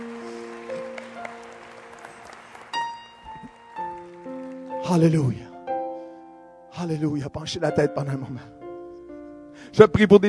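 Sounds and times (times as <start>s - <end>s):
audience applause: 0.0s - 5.1s
speech: 4.9s - 5.5s, 6.8s - 8.6s, 9.7s - 10.2s.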